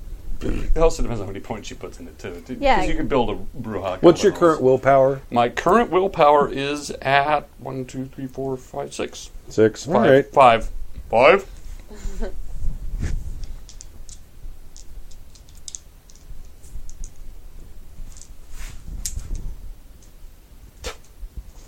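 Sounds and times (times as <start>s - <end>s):
speech: 0.4s - 12.4s
handfuls of dice being gathered: 13.4s - 17.2s.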